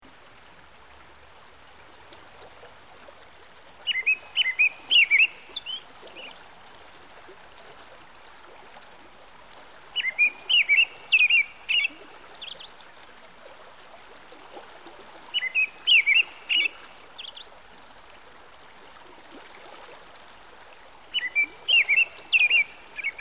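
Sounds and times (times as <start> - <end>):
American robin song by a stream: 3.2 - 6.4, 10.0 - 12.7, 15.4 - 17.5, 21.1 - 23.1.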